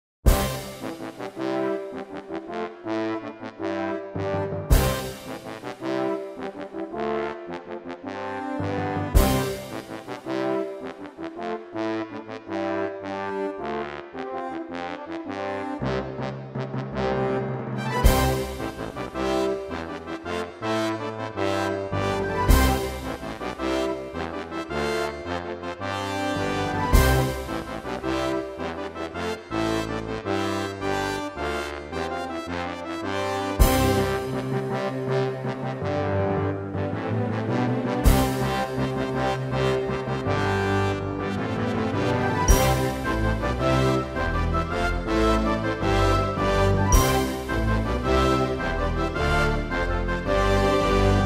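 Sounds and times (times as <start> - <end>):
heroic fanfare: 0.3 - 51.2.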